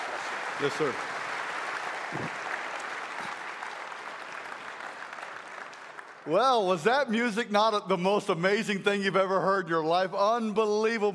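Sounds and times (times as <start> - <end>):
crowd clapping welcoming a guest speaker to a morning gathering in Oshawa: 0.0 - 7.2
speech: 0.6 - 1.2, 2.1 - 2.4, 6.3 - 11.1.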